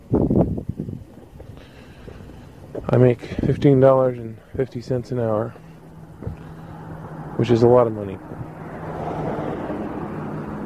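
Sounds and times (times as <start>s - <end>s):
speech: 2.9s - 5.6s, 6.2s - 6.4s, 7.4s - 8.6s
police car driving past: 5.7s - 10.6s.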